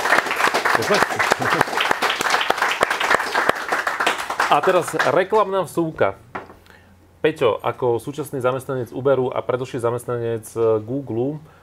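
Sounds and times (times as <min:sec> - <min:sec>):
audience applause: 0:00.0 - 0:05.3
speech: 0:00.8 - 0:01.9, 0:04.5 - 0:06.2, 0:07.2 - 0:11.6.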